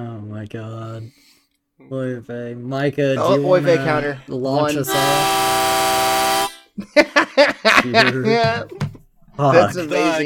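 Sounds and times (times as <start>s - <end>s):
speech: 0.0s - 1.2s, 1.8s - 5.7s, 6.8s - 7.2s, 7.8s - 8.8s, 9.4s - 10.2s
counter buzzer horn sound effect: 4.7s - 6.7s
laughter: 6.8s - 8.8s.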